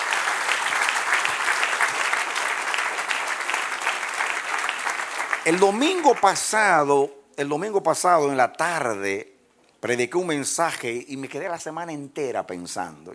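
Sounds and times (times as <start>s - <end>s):
audience applause: 0.0s - 6.6s
speech: 5.5s - 13.1s.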